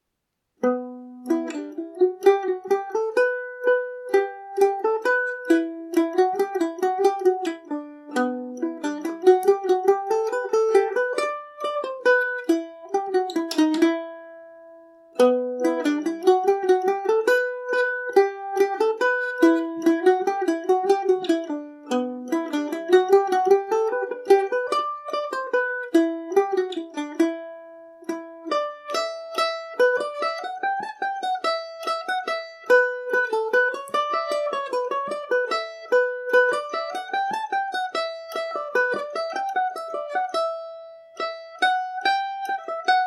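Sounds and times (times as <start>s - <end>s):
Irish mandolin in E dorian: 0.0s - 43.0s.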